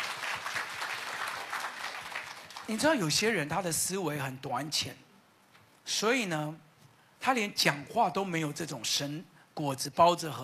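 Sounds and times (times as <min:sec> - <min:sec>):
audience clapping hands: 0:00.0 - 0:03.0
speech: 0:02.7 - 0:05.0, 0:05.9 - 0:10.4.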